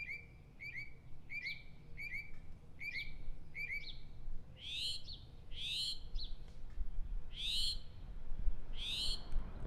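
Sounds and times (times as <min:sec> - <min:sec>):
northern mockingbird song: 0:00.0 - 0:06.5, 0:07.3 - 0:08.0, 0:08.8 - 0:09.3.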